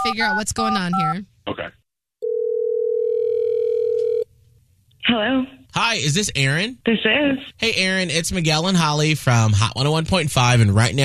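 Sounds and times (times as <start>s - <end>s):
speech: 0.1s - 1.8s, 5.1s - 11.0s
telephone line tone as radio hosts call someone: 2.2s - 4.3s.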